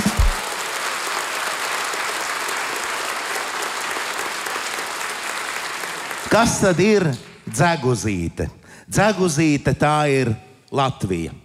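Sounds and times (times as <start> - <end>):
audience applause: 0.0 - 7.4
speech: 6.3 - 11.4.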